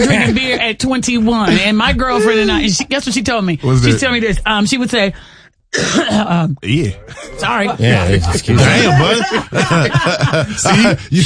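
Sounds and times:
laughter: 0:00.0 - 0:02.9, 0:06.8 - 0:11.2
speech: 0:00.0 - 0:11.2
person clearing throat with a cough: 0:05.8 - 0:07.4.

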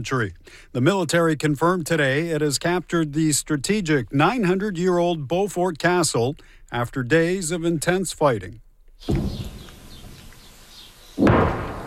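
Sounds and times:
speech: 0:00.0 - 0:09.6
distant explosions echoing across southern Lebanon: 0:09.1 - 0:10.2, 0:11.2 - 0:11.8.

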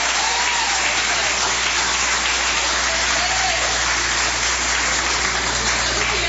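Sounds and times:
audience clapping joyfully: 0:00.0 - 0:06.2.

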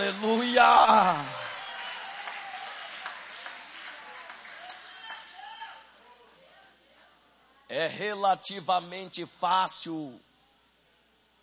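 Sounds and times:
audience applauding: 0:00.0 - 0:05.9
speech: 0:00.5 - 0:01.4, 0:07.7 - 0:10.3.

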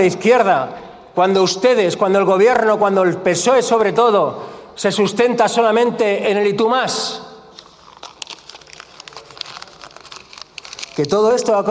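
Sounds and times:
speech: 0:00.0 - 0:07.3, 0:11.0 - 0:11.6
sheet of paper crumpled by hand: 0:07.5 - 0:11.2.

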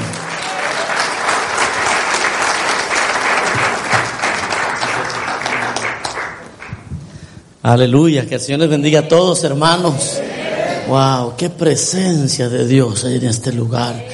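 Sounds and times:
audience applause: 0:00.0 - 0:06.9
speech: 0:07.6 - 0:10.2, 0:10.9 - 0:14.1.

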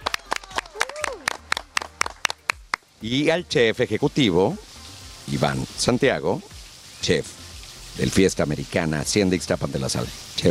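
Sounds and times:
applause: 0:00.0 - 0:02.9
speech: 0:03.0 - 0:04.6, 0:05.3 - 0:07.4, 0:08.0 - 0:10.4.

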